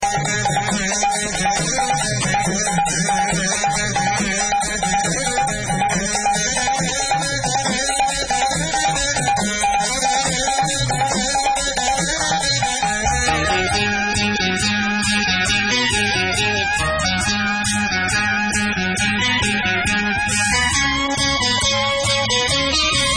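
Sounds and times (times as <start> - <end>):
Tamil tone: 0.0 - 23.1.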